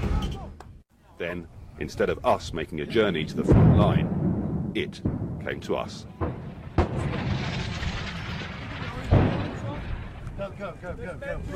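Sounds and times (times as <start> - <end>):
speech: 1.2 - 7.6, 10.4 - 11.5
explosions: 3.2 - 11.5
gunfire: 3.5 - 10.4.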